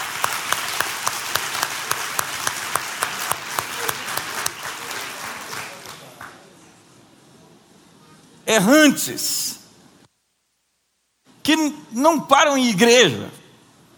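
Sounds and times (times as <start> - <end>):
audience applause: 0.0 - 6.5
speech: 8.5 - 9.4, 11.6 - 13.4.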